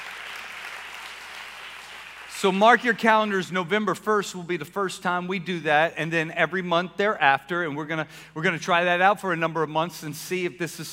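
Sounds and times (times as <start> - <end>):
audience clapping: 0.0 - 3.0
speech: 2.4 - 10.9.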